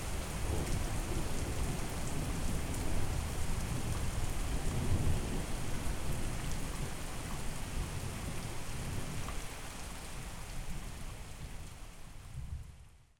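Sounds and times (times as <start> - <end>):
relaxing rain: 0.0 - 13.1.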